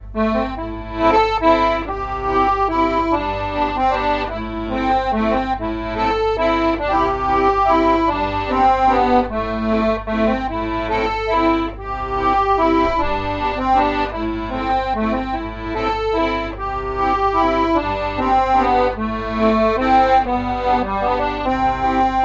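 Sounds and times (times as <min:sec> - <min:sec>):
waltz music: 0:00.0 - 0:22.2.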